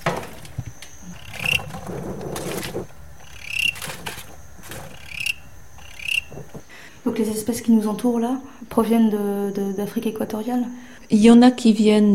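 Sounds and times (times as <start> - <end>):
rustling: 0.0 - 6.8
male field cricket aggression song chirp bursts: 0.0 - 11.1
speech: 7.2 - 12.1.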